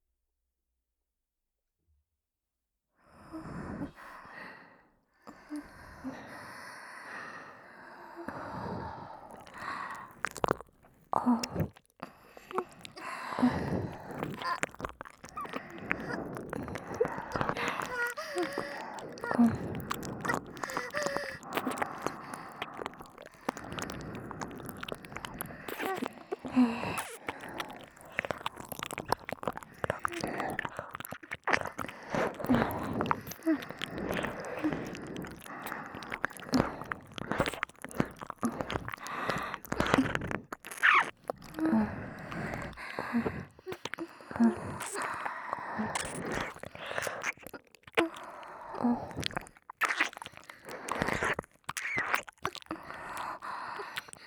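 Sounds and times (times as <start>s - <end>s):
binaural ear licking: 8.3s - 54.2s
moaning: 13.4s - 37.2s.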